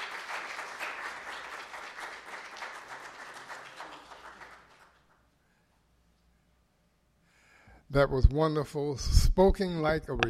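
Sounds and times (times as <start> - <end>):
warm round of applause: 0.0 - 5.3
speech: 7.9 - 10.2.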